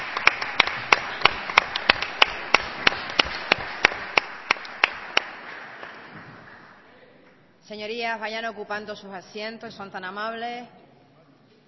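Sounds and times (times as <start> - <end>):
audience applause: 0.0 - 6.8
speech: 7.7 - 10.8.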